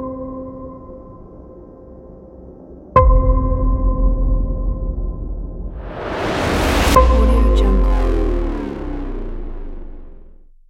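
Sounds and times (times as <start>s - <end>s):
action trailer music: 3.0s - 10.6s.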